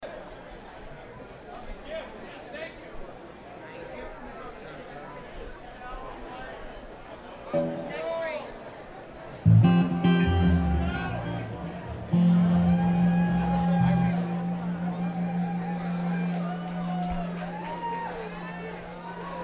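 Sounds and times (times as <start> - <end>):
instrument tuning: 7.5 - 8.2, 9.5 - 19.4.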